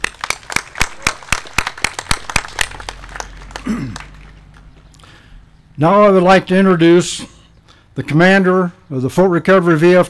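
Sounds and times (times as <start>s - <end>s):
audience clapping: 0.0s - 5.1s
speech: 3.6s - 4.1s, 5.8s - 7.3s, 8.0s - 10.0s.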